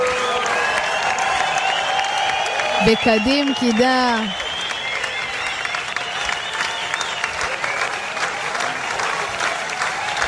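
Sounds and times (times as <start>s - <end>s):
audience applause, standing ovation: 0.0s - 10.2s
speech: 2.8s - 4.4s.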